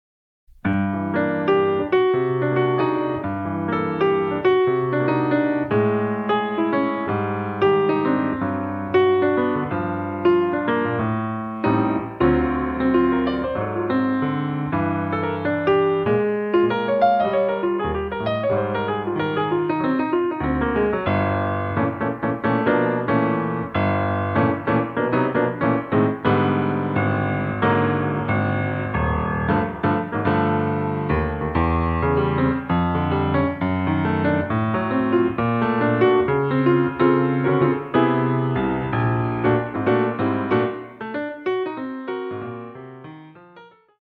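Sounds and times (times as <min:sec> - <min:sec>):
jazz music in G minor: 0:00.6 - 0:43.3.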